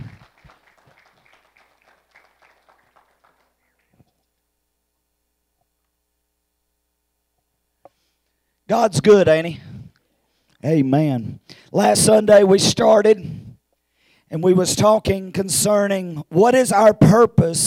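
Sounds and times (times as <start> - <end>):
audience applauding: 0.0 - 4.1
speech: 8.7 - 9.7, 10.6 - 13.4, 14.3 - 17.6.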